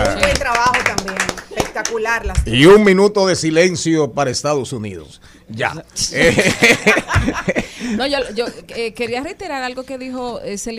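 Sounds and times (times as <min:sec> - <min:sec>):
rhythmic clapping: 0:00.0 - 0:02.5
speech: 0:01.9 - 0:10.7
laughter: 0:06.2 - 0:08.9.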